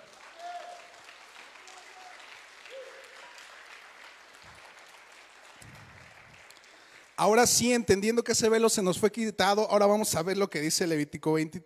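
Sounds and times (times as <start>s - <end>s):
audience applause: 0.0s - 7.4s
speech: 7.2s - 11.6s.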